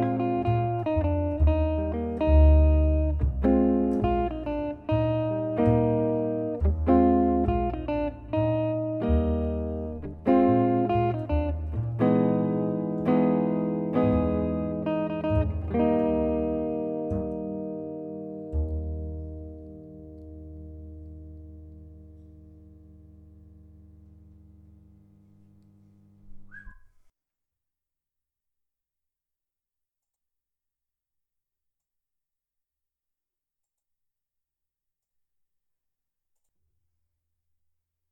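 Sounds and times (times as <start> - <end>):
bass guitar: 0.0 - 25.0.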